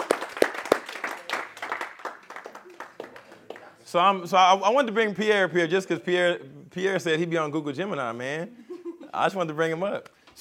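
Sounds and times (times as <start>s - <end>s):
audience hand clapping: 0.0s - 3.8s
speech: 3.9s - 10.4s.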